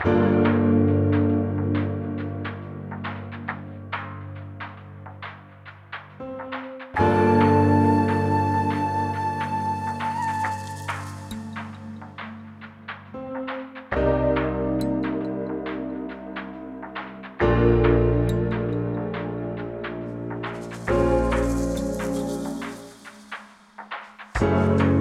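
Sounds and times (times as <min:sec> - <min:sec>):
calm music: 0:00.0 - 0:24.9.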